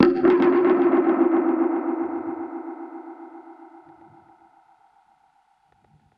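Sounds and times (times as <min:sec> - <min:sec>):
dub percussion hit: 0:00.0 - 0:04.7.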